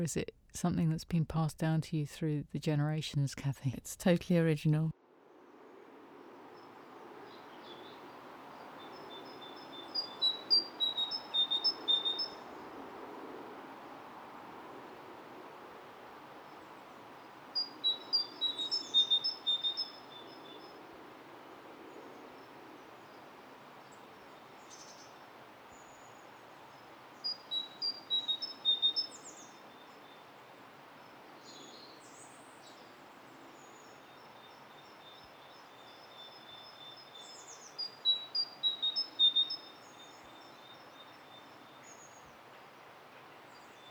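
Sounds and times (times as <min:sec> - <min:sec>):
speech: 0:00.0 - 0:05.0
bird chirping: 0:06.6 - 0:12.8, 0:16.4 - 0:30.4, 0:31.4 - 0:43.8
great tit singing: 0:07.2 - 0:12.8, 0:16.1 - 0:25.2, 0:25.8 - 0:30.3, 0:31.4 - 0:42.4.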